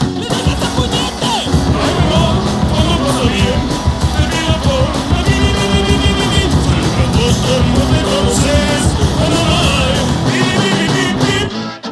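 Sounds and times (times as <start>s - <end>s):
salsa music: 0.2s - 11.6s.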